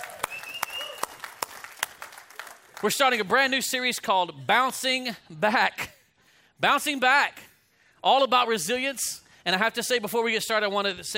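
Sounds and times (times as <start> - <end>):
audience applause: 0.0 - 2.9
speech: 2.8 - 5.9, 6.6 - 7.4, 8.0 - 11.1.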